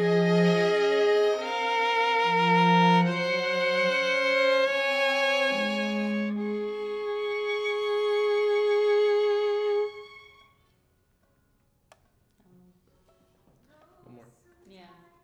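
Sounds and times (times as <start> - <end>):
violin: 0.0 - 10.9.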